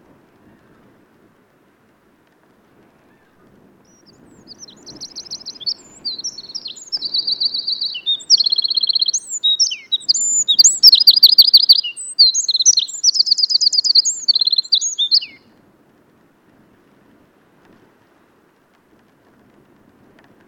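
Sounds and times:
Eurasian wren singing: 3.9 - 15.4.

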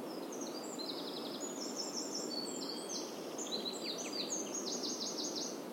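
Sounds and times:
Eurasian wren singing: 0.1 - 5.7.

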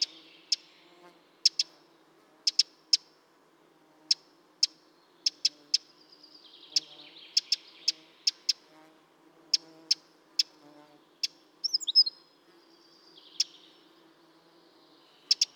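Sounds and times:
Eurasian wren calls: 0.0 - 0.8, 1.4 - 1.8, 2.4 - 3.1, 4.1 - 8.8, 9.5 - 12.2, 12.8 - 13.8, 15.2 - 15.5.

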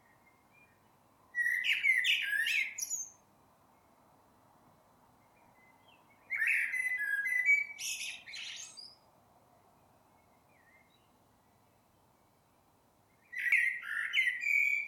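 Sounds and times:
Eurasian blackbird Turdus merula singing mellow fluting phrases: 1.4 - 3.2, 5.8 - 9.0, 13.2 - 14.8.

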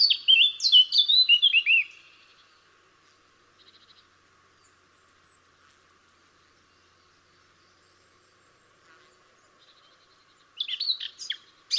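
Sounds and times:
Eurasian blackcap whistling: 0.0 - 2.4, 10.6 - 11.7.

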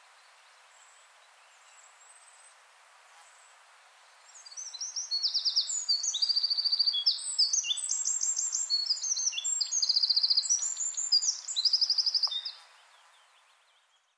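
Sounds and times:
Eurasian wren song: 4.3 - 14.1.

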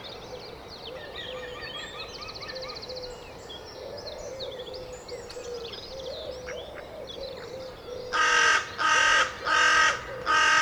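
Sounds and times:
carrion crow cawing: 8.1 - 10.6.

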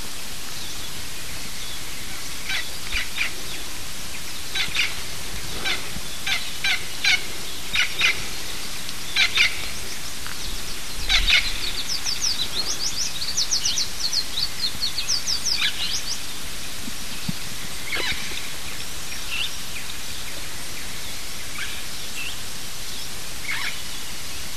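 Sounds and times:
steady background hiss: 0.0 - 24.5
harsh bird calls: 1.7 - 16.4, 17.2 - 19.6.

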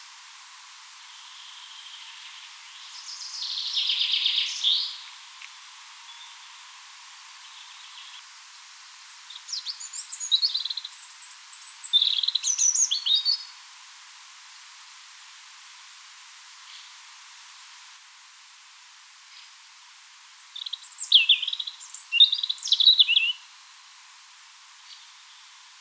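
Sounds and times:
European robin singing: 1.1 - 5.1, 9.0 - 13.5, 20.3 - 23.5.

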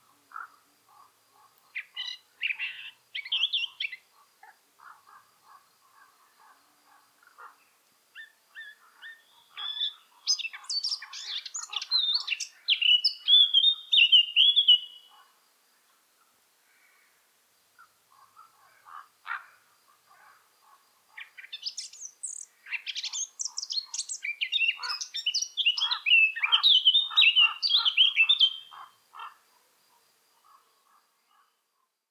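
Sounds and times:
Eurasian blackcap song: 1.8 - 4.0, 8.2 - 15.2, 21.2 - 28.9.

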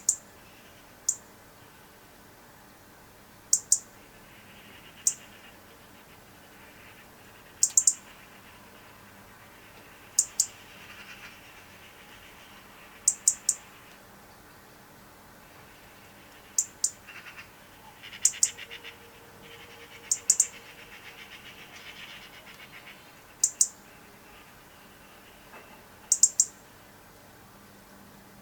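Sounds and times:
European robin high ticking calls: 0.0 - 0.3, 1.0 - 1.3, 3.5 - 8.9, 9.7 - 13.9, 16.1 - 26.7
quiet hiss: 0.0 - 28.4.

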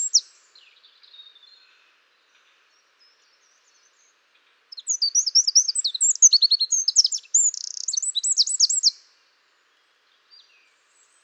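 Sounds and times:
Eurasian wren singing: 0.0 - 0.4, 4.7 - 9.0.

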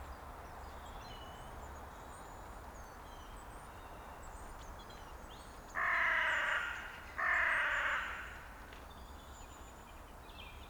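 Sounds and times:
carrion crow cawing: 5.8 - 8.4.

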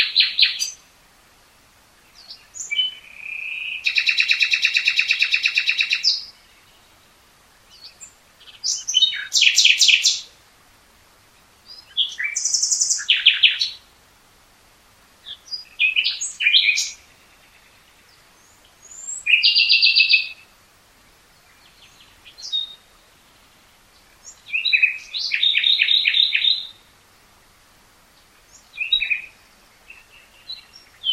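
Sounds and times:
common nightingale singing: 0.0 - 0.9, 1.5 - 10.4, 11.3 - 14.0, 15.2 - 20.6, 21.2 - 27.0, 28.1 - 31.1.

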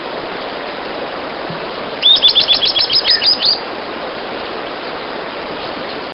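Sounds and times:
faint background hiss: 0.0 - 6.1
bird giving high thin chirps and twittering notes: 2.0 - 3.6.

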